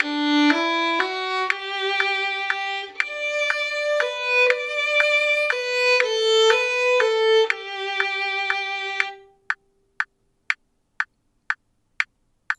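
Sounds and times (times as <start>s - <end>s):
violin waltz: 0.0s - 9.4s
metronome click at 120: 0.0s - 12.5s.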